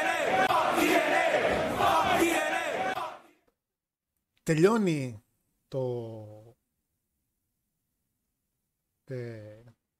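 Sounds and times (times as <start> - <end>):
crowd of voices shouting and yelling: 0.0 - 3.4
speech: 4.5 - 6.4, 9.1 - 9.7.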